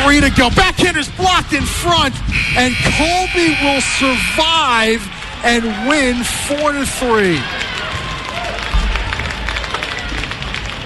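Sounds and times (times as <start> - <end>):
crowd noise: 0.0 - 10.8
speech: 0.2 - 7.7
crowd applauding at hockey game: 3.2 - 10.8.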